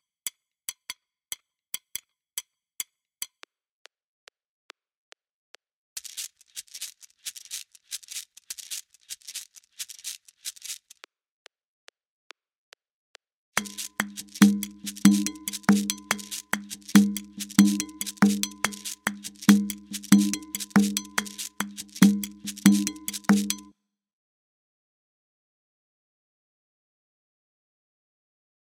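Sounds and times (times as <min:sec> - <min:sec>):
Adowa drum rhythm: 0:13.6 - 0:23.7.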